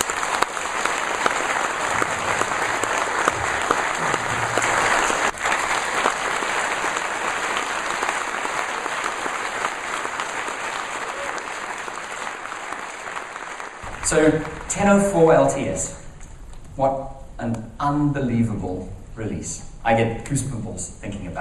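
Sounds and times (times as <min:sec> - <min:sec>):
audience applause: 0:00.0 - 0:15.5
speech: 0:14.3 - 0:16.0, 0:16.8 - 0:21.3.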